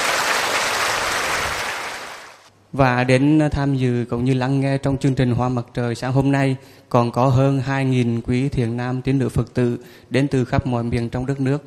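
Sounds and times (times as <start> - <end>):
audience applause: 0.0 - 2.5
speech: 2.7 - 11.6.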